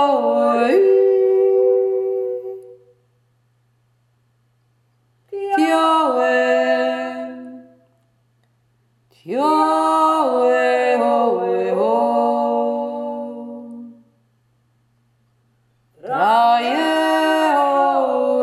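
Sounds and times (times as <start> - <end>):
two voices singing: 0.0 - 2.8, 5.3 - 7.8, 9.2 - 14.1, 16.0 - 18.4.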